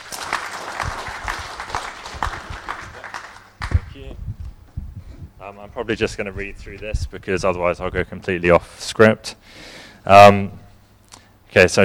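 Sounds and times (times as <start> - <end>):
audience clapping: 0.0 - 4.0
speech: 5.5 - 10.6, 11.6 - 11.8.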